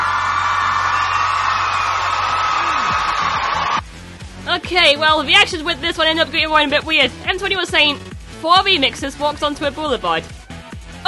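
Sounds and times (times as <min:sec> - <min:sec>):
audience applauding: 0:00.0 - 0:03.8
speech: 0:04.7 - 0:10.4.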